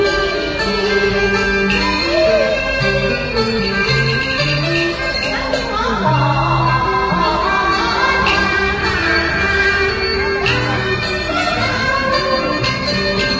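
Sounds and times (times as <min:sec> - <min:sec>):
Peking opera in Guangzhou China: 0:00.0 - 0:13.3.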